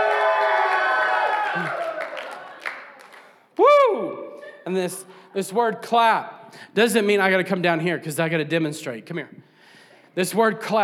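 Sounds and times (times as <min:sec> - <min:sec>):
audience shouting and cheering: 0:00.0 - 0:02.7
speech: 0:04.7 - 0:09.5, 0:10.2 - 0:10.8.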